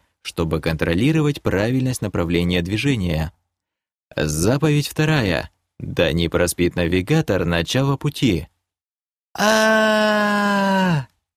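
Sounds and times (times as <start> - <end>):
speech: 0.3 - 3.4, 4.2 - 8.5, 9.3 - 11.1
muffled piercing scream: 9.4 - 11.1.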